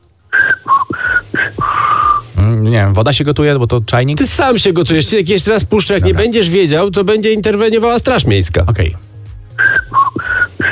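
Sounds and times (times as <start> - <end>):
woman whistling a melody: 0.3 - 2.2, 9.6 - 10.7
speech: 2.8 - 9.1.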